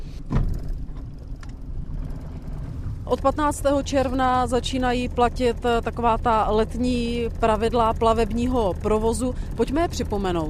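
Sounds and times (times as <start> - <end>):
river police boat engine rumbling on the Slapy reservoir: 0.0 - 10.4
heavy thump: 0.2 - 0.8
speech: 3.1 - 10.4.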